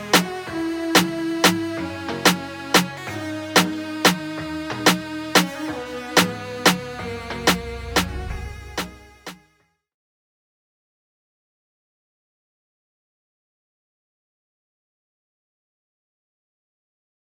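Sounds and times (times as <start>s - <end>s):
Latin dancehall music: 0.0s - 9.4s.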